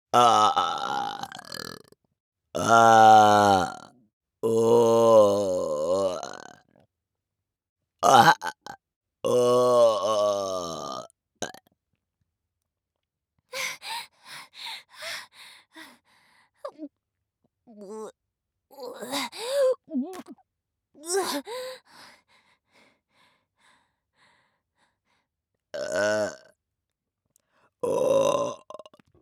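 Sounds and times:
person burping: 0:00.2 - 0:01.9, 0:02.6 - 0:06.6, 0:08.0 - 0:11.6, 0:19.9 - 0:20.4, 0:25.8 - 0:26.5, 0:27.8 - 0:29.0.

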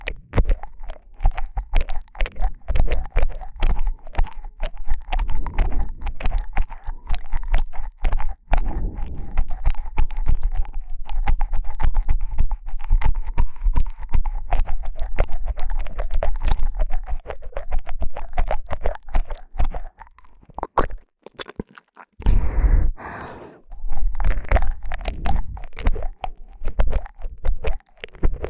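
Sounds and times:
ASMR tongue slapping sounds in right ear: 0:00.0 - 0:21.6, 0:23.2 - 0:28.4.

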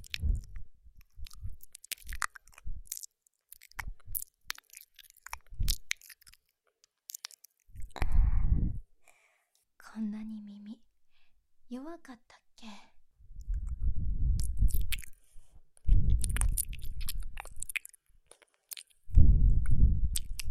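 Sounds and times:
ear licking: 0:00.0 - 0:06.4, 0:13.4 - 0:15.2, 0:15.8 - 0:19.0, 0:20.1 - 0:20.4
breathing sighs: 0:08.0 - 0:09.5.

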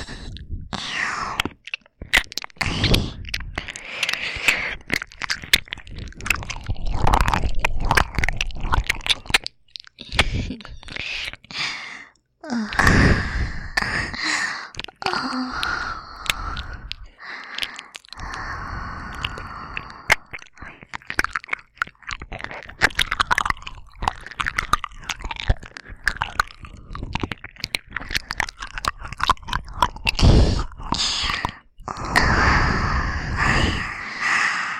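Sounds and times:
binaural ear licking on both ears: 0:00.0 - 0:34.7
aroused breathing: 0:02.6 - 0:04.9, 0:10.1 - 0:20.8, 0:30.2 - 0:34.7.

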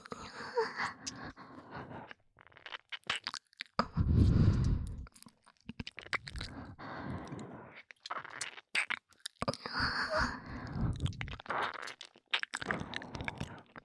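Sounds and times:
relaxed breathing: 0:00.0 - 0:02.2, 0:03.8 - 0:05.1, 0:06.4 - 0:07.8, 0:09.6 - 0:11.3, 0:12.7 - 0:13.8
ear licking sounds: 0:00.7 - 0:13.8.

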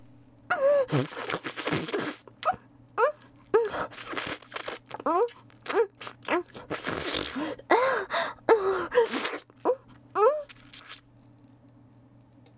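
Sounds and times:
sucking sounds: 0:00.5 - 0:11.0
person moaning: 0:04.9 - 0:10.5.

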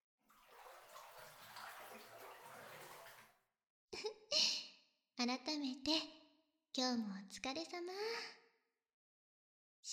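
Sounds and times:
bathwater sloshing and pouring in a filled tub: 0:00.2 - 0:03.4
water splashing in a bathtub: 0:00.3 - 0:03.4
speech: 0:05.2 - 0:06.2, 0:06.8 - 0:08.4.

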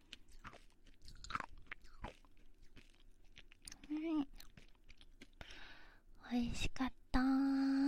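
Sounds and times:
konpeito sugar candy chewed and crunched: 0:00.0 - 0:05.6
speech: 0:06.3 - 0:07.0.

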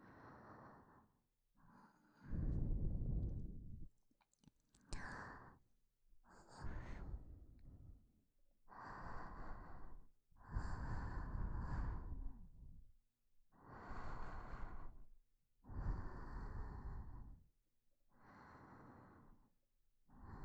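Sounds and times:
person breathing in sleep: 0:00.0 - 0:03.8, 0:06.2 - 0:08.0, 0:08.7 - 0:12.8, 0:13.6 - 0:17.4, 0:18.1 - 0:19.5, 0:20.1 - 0:20.4.

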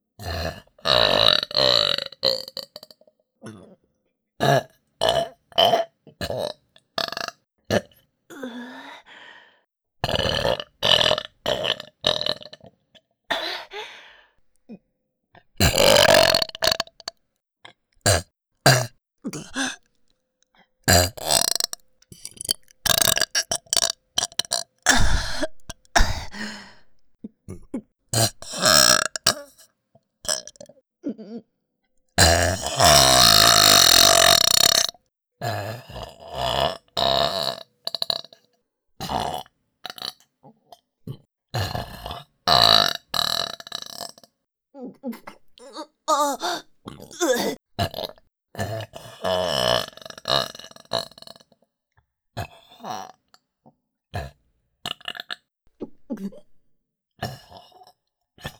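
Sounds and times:
burping: 0:00.2 - 0:03.8, 0:04.4 - 0:07.9, 0:10.0 - 0:12.7, 0:15.6 - 0:17.2, 0:18.0 - 0:19.9, 0:20.9 - 0:31.4, 0:32.2 - 0:38.4, 0:41.1 - 0:44.3, 0:45.2 - 0:51.5.

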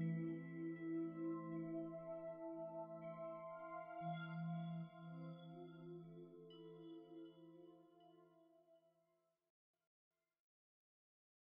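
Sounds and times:
healing background music: 0:00.0 - 0:08.7.

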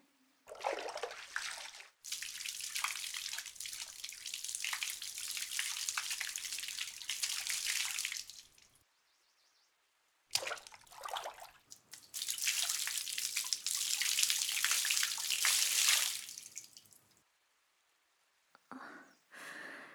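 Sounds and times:
water poured over hair to rinse it: 0:00.5 - 0:08.7, 0:10.4 - 0:17.0.

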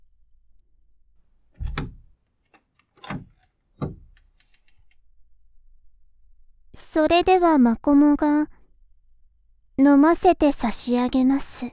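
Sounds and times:
cage door being opened with knocking clatters: 0:01.6 - 0:04.9
small clicks: 0:01.6 - 0:05.0
speech: 0:07.0 - 0:08.6, 0:09.8 - 0:11.7.

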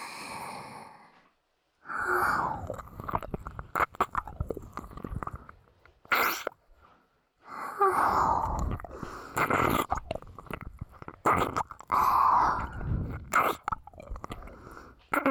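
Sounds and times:
ear licking: 0:02.4 - 0:06.8, 0:08.3 - 0:15.2.

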